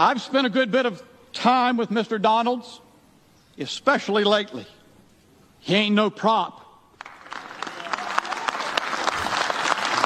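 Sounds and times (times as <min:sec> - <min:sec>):
speech: 0:00.0 - 0:02.8, 0:03.6 - 0:04.8, 0:05.6 - 0:06.6
audience clapping: 0:06.9 - 0:10.0.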